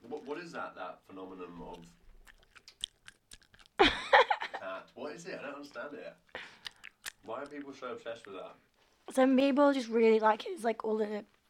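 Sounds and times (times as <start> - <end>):
speech: 0.4 - 2.0, 4.7 - 6.4, 7.2 - 11.4
chewing Haribo Squidgelets sweets: 1.2 - 4.4, 6.2 - 8.8.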